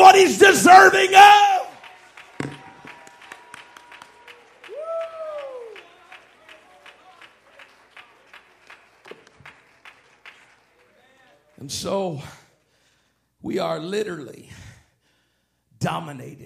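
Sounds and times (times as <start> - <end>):
speech: 0.2 - 1.4, 11.6 - 12.4, 13.4 - 14.7, 15.8 - 16.4
audience clapping: 0.7 - 12.8
rising and falling vocal whoop: 2.5 - 5.8.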